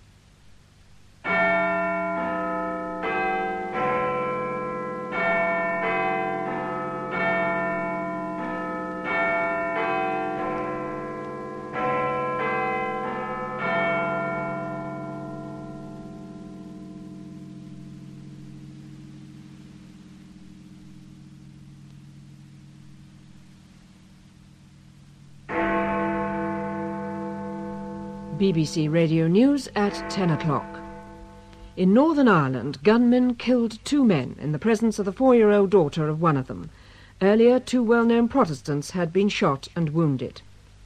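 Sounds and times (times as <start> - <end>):
Big Ben chiming quarter bells: 1.3 - 23.2, 25.0 - 32.2
speech: 28.4 - 30.7, 31.8 - 40.5.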